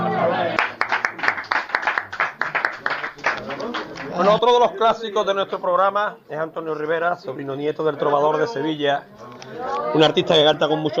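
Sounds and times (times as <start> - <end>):
audience applause: 0.0 - 4.5
speech: 4.2 - 10.9.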